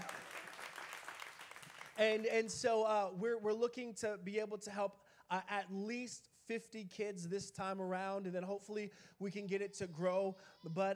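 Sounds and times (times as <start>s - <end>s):
audience clapping: 0.0s - 2.5s
speech: 2.0s - 10.9s.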